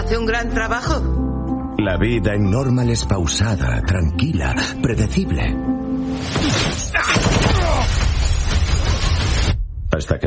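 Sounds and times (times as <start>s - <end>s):
speech: 0.1s - 1.2s, 1.8s - 7.5s, 10.0s - 10.2s
gunfire in a trailer for the action film Normal: 6.4s - 9.6s.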